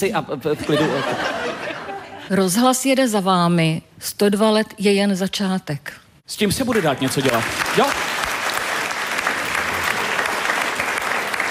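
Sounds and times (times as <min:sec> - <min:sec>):
speech: 0:00.0 - 0:01.7, 0:02.3 - 0:08.2
laughter: 0:00.5 - 0:02.3
half-hearted clapping: 0:06.7 - 0:11.5.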